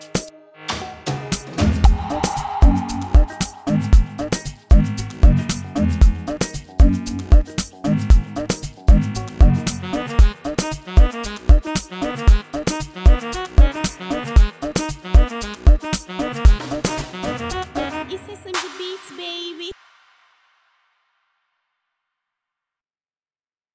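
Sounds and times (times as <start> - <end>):
bass: 1.6 - 12.2, 15.4 - 18.0.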